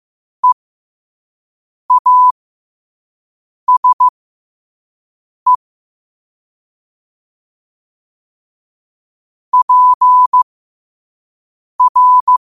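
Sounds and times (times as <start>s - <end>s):
morse code at 5 wpm: 1.9s - 2.3s, 3.7s - 4.1s, 9.6s - 10.5s, 11.8s - 12.4s.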